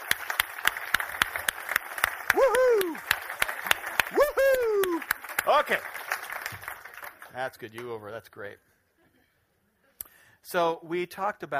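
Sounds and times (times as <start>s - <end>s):
audience clapping: 0.0s - 8.2s
speech: 2.3s - 3.1s, 5.5s - 6.0s, 7.4s - 8.7s, 10.5s - 11.5s.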